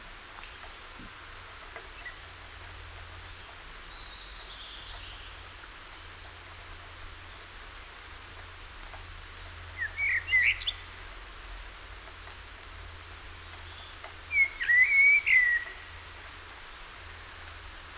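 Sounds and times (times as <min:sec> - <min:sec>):
common blackbird Turdus merula whistling: 0:14.3 - 0:15.8.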